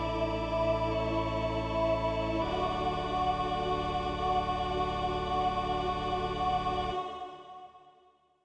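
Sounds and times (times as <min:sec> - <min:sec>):
organ accompanying a chorale in D major: 0:00.0 - 0:07.3
choir singing a chorale in D major: 0:00.0 - 0:08.3.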